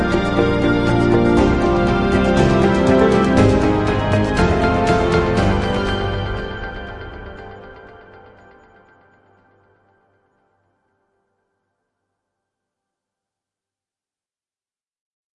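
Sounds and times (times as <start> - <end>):
triumphant ambient music: 0.0 - 9.4.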